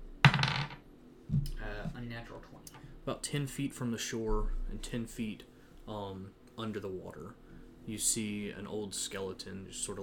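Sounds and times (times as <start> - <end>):
dice rolling across a hard surface: 0.3 - 0.8
speech: 2.0 - 10.0.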